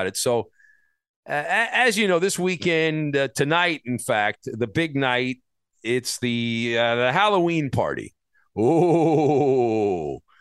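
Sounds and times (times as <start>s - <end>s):
speech: 0.0s - 0.6s, 1.2s - 10.2s
person imitating a spooky ghostly moan: 8.6s - 10.2s.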